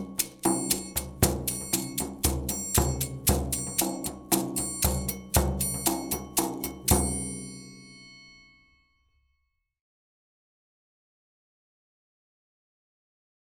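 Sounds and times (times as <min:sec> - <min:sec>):
percussion: 0:00.0 - 0:09.0.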